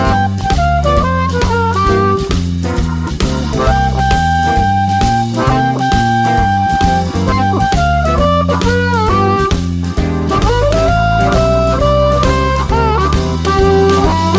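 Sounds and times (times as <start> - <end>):
jump blues backing track for harmonica in G: 0.0 - 14.3.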